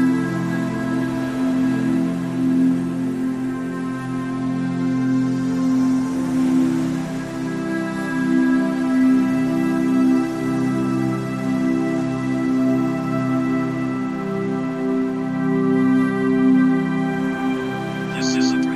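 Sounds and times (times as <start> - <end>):
music: 0.0 - 18.7.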